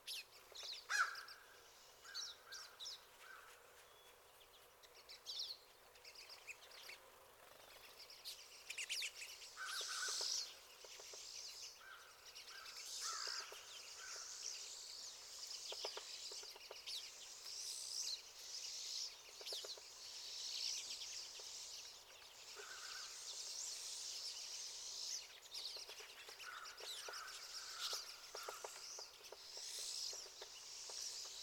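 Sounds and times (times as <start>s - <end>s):
faint steady hiss: 0.0s - 31.4s
pine siskins twittering: 8.3s - 31.4s.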